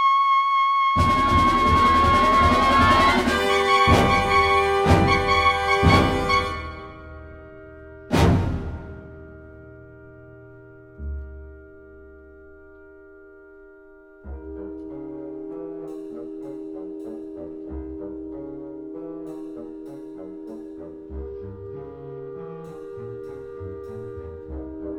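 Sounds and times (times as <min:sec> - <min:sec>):
trumpet and wind ensemble playing a concerto movement: 0:00.0 - 0:09.1, 0:14.4 - 0:24.9.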